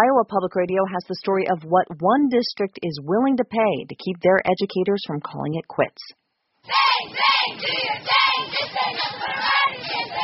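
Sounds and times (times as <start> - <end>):
speech: 0.0 - 9.1
crowd cheering at a high school football scrimmage for Roosevelt High School in Des Moines: 6.7 - 10.2.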